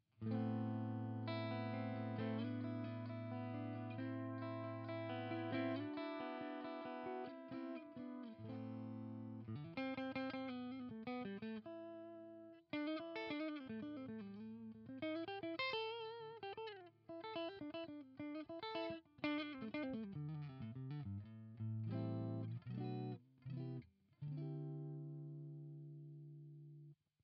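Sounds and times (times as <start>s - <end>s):
Harley Benton CST 24HB electric guitar clean split neck pickup: 0.0s - 26.9s.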